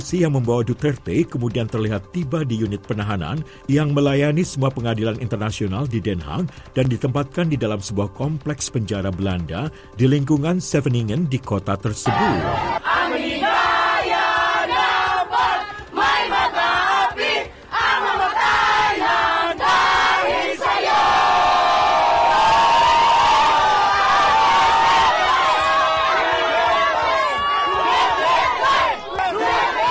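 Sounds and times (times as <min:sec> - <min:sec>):
speech: 0:00.0 - 0:13.0
crowd chanting a name outside facility: 0:12.1 - 0:29.9.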